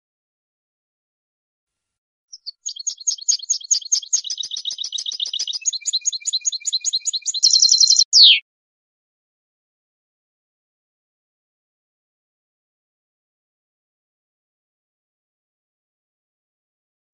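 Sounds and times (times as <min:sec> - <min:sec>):
European goldfinch song: 0:02.3 - 0:08.4.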